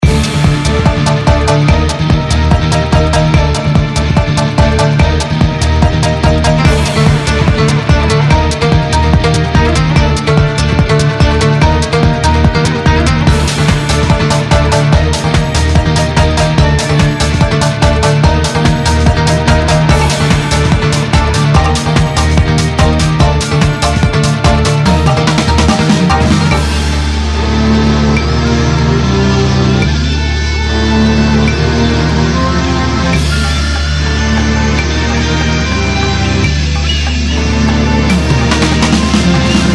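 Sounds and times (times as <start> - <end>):
war background music: 0.0 - 39.7.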